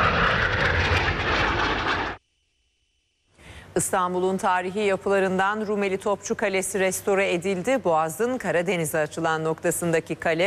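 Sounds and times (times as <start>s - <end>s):
military jets of an aerobatic team flying a display at an air show: 0.0s - 2.2s
speech: 3.8s - 10.4s.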